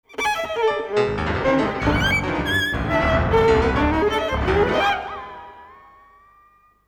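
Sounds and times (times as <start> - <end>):
synth violin: 0.0 - 6.7.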